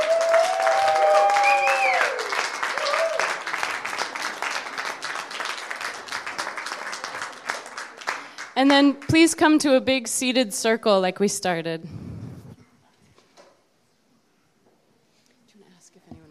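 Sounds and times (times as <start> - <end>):
audience applause: 0.0 - 9.1
speech: 8.6 - 12.0.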